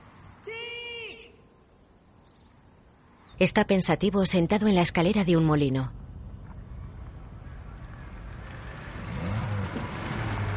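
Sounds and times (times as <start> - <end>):
speech: 3.4 - 6.0
car engine approaching from the road at dusk: 5.9 - 10.5.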